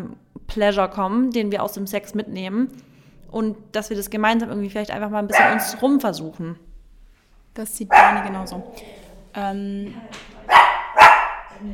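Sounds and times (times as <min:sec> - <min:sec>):
speech: 0:00.0 - 0:06.7, 0:07.6 - 0:10.3
dog barking: 0:05.3 - 0:05.9, 0:07.9 - 0:08.8, 0:10.5 - 0:11.6.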